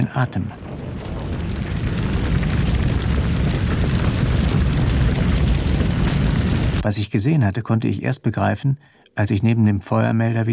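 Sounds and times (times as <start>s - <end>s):
house exploding and roaring in flames after a fuse sets off an explosion: 0.0s - 6.9s
dense crackling of a burning house: 0.0s - 7.0s
speech: 0.1s - 0.6s, 6.8s - 10.5s.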